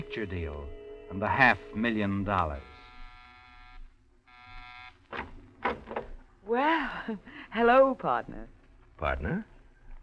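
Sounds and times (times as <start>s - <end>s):
speech: 0.0s - 2.7s, 6.5s - 9.5s
apartment door buzzer: 2.4s - 5.2s.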